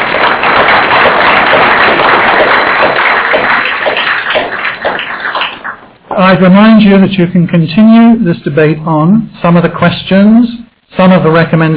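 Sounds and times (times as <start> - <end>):
audience applause: 0.0 - 6.4
speech: 6.2 - 11.7.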